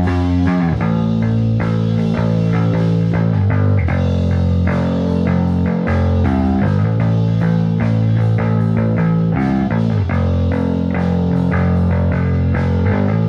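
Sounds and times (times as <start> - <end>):
D112 bass: 0.0 - 13.2.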